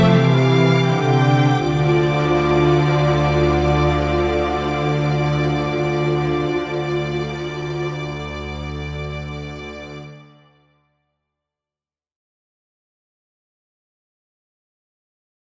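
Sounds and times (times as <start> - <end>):
adagio in D minor: 0.0 - 10.4.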